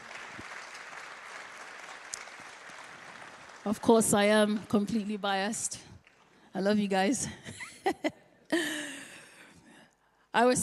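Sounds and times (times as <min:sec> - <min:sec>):
audience clapping for worship team: 0:00.0 - 0:04.0
speech: 0:03.6 - 0:05.9, 0:06.6 - 0:08.2, 0:10.4 - 0:10.6.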